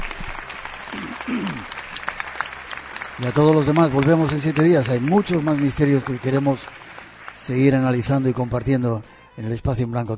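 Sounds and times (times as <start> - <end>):
theatre audience applause: 0.0 - 8.6
person cheering: 0.9 - 1.7
speech: 1.3 - 1.8, 3.2 - 6.8, 7.4 - 10.1.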